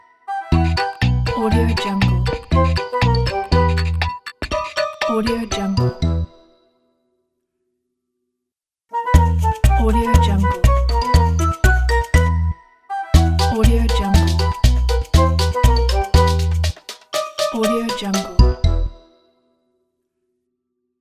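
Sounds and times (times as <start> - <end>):
happy hopping logo jingle: 0.5 - 6.7, 9.2 - 19.3.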